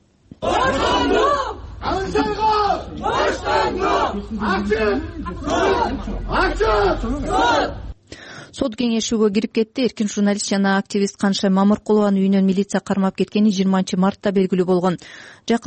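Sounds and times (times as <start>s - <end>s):
supporters chanting outside a courthouse demanding a journalist's release: 0.4s - 8.0s
speech: 3.7s - 7.8s, 8.6s - 15.6s.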